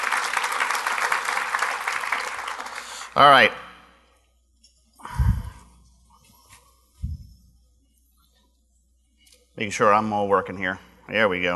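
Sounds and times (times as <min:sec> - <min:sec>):
round of applause: 0:00.0 - 0:03.4
speech: 0:03.2 - 0:03.6, 0:09.6 - 0:11.5.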